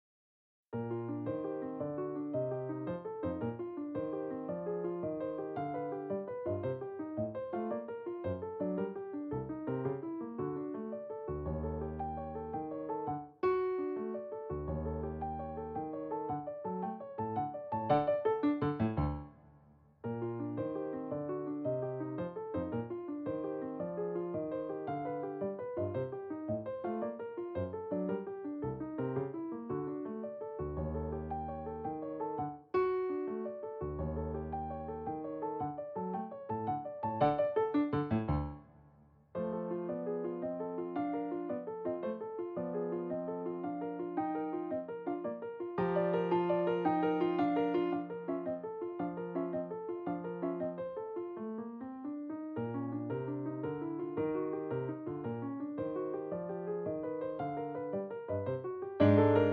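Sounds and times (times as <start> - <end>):
piano scherzo: 0.7 - 59.5.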